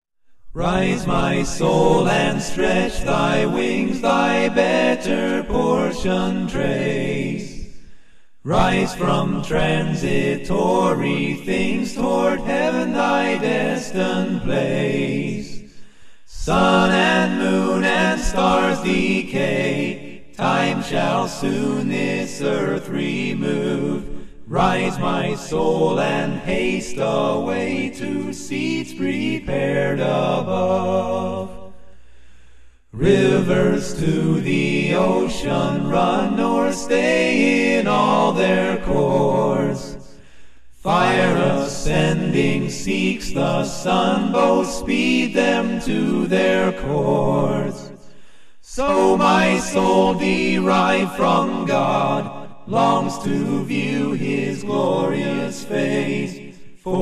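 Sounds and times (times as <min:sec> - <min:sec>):
a cappella hymn: 0:00.3 - 0:57.0.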